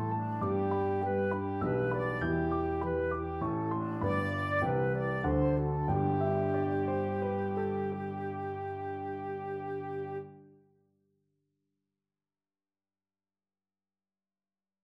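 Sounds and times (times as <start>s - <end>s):
flute trio: 0.0s - 10.2s.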